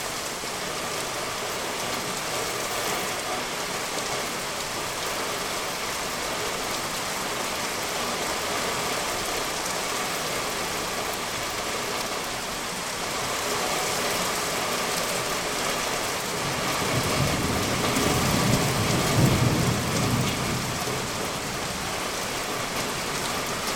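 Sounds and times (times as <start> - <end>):
monsoon rain downtown: 0.0 - 23.7
thunder: 16.5 - 21.2.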